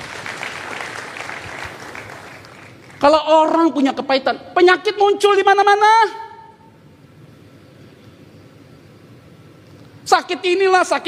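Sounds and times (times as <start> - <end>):
crowd applause: 0.0 - 3.0
speech: 3.0 - 6.2, 10.1 - 11.0.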